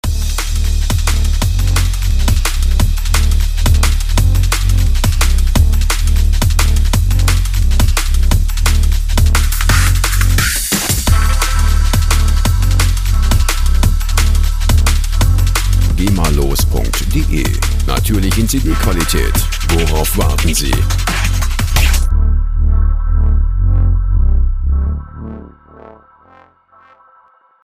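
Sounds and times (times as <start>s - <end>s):
drum and bass music: 0.0s - 26.2s.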